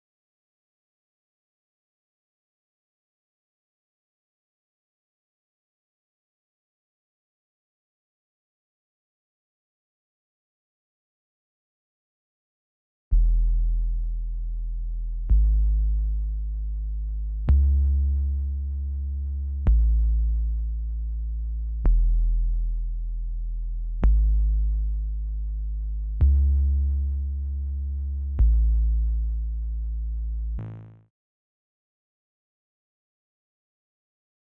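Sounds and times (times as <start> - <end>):
bass line in E major: 13.1 - 31.1.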